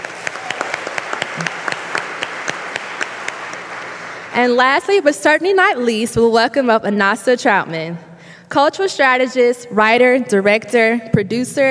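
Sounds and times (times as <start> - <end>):
audience applause at a Memphis arts community event: 0.0 - 4.4
speech: 4.4 - 11.6.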